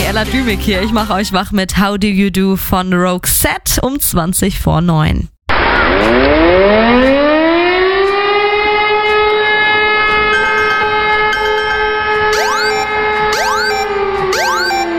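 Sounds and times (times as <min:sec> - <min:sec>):
speech: 0:00.1 - 0:05.3, 0:06.0 - 0:07.3
civil defence warning siren during a nationwide warning day test: 0:05.6 - 0:14.9.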